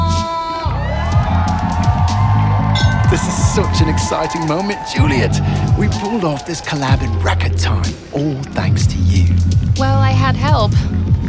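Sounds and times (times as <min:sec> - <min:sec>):
crowd cheering: 0:00.4 - 0:08.5
whoops and shouts: 0:00.5 - 0:07.6
speech: 0:03.1 - 0:11.1.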